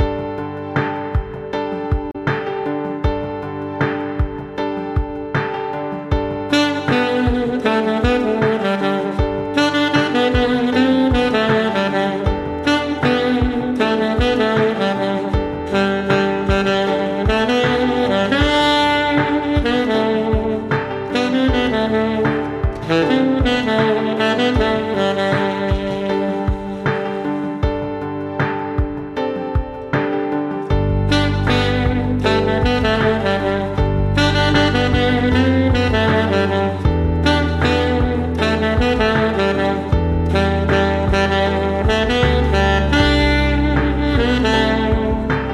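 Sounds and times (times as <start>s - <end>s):
alto saxophone playing a cover: 0.0s - 45.5s.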